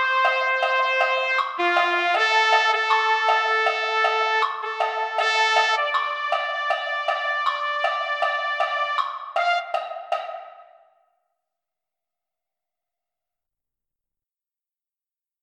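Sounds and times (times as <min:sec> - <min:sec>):
trumpet: 0:00.0 - 0:10.4.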